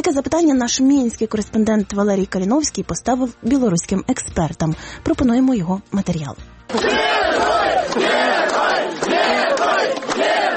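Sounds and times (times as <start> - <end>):
speech: 0.1 - 8.3
large crowd shouting and chanting at a bus station: 6.7 - 10.5.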